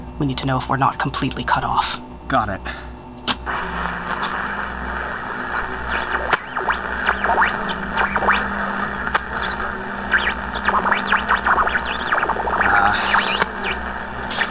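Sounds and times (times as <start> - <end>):
speech: 0.2 - 3.6
radio tuning sweep across AM and FM frequencies: 3.3 - 14.4.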